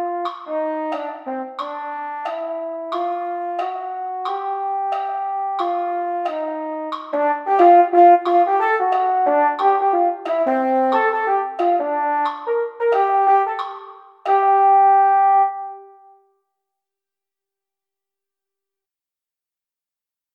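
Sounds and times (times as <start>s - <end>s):
mellophones playing: 0.0s - 15.1s.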